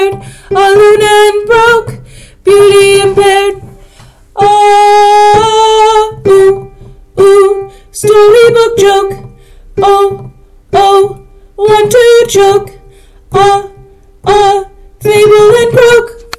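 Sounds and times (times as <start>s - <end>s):
altos singing: 0.0s - 16.3s.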